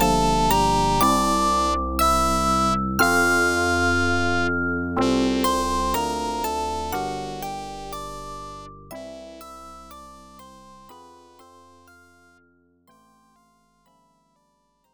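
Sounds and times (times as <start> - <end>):
title theme music: 0.0 - 8.7.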